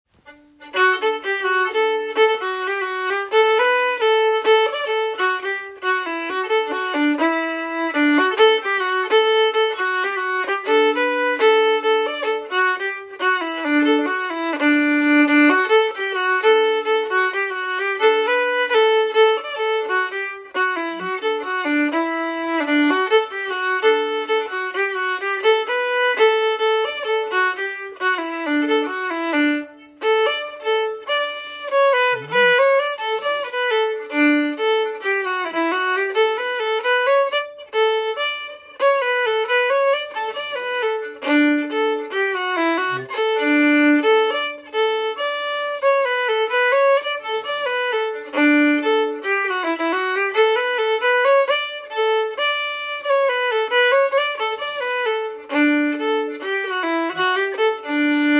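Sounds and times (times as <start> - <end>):
fiddle playing a schottische: 0.0 - 58.3.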